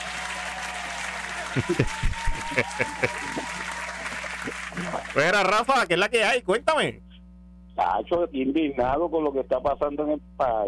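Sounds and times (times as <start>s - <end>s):
crowd applause: 0.0s - 5.4s
laughter: 1.4s - 3.7s
speech: 1.5s - 3.8s, 4.4s - 7.0s, 7.8s - 10.6s.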